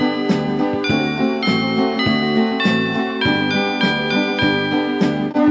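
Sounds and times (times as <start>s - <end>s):
metallophone bells in G: 0.0s - 5.4s.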